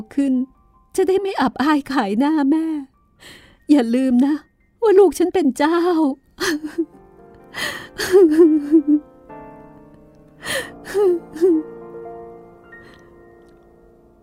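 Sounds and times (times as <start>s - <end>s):
speech: 0.0s - 7.0s, 7.6s - 9.1s, 10.4s - 11.7s
woman sobbing: 6.4s - 7.0s, 7.6s - 9.0s, 10.4s - 11.7s.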